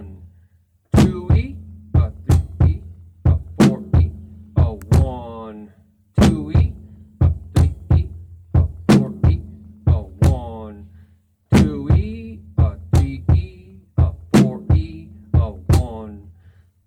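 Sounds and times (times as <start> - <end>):
drum beat: 1.0 - 5.4, 6.2 - 10.6, 11.6 - 16.0.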